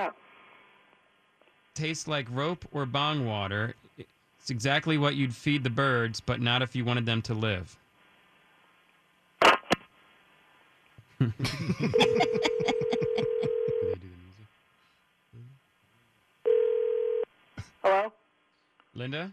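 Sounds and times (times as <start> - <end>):
speech: 0.0 - 0.2, 1.8 - 7.8, 11.2 - 14.1, 19.0 - 19.3
burst of laughter: 11.2 - 13.2
telephone dial tone after disconnected call: 13.0 - 14.0, 16.5 - 17.2.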